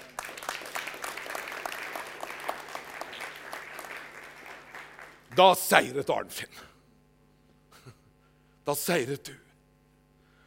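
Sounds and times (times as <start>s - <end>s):
applause for Jesus: 0.0s - 5.5s
speech: 5.4s - 6.7s, 8.7s - 9.4s.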